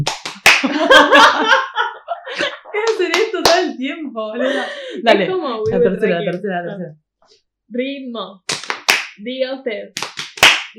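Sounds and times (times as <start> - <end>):
rhythmic hand clapping: 0.0 - 1.6, 2.4 - 3.8, 8.5 - 9.2, 9.9 - 10.7
speech: 0.6 - 1.7, 2.3 - 8.5, 9.2 - 10.0
laughter: 0.6 - 3.7, 4.4 - 6.2.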